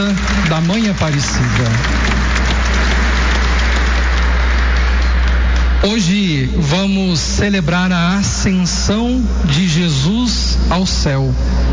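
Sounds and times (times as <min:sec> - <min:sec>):
speech: 0:00.0 - 0:02.5, 0:05.8 - 0:11.7
crowd applause: 0:00.0 - 0:06.1.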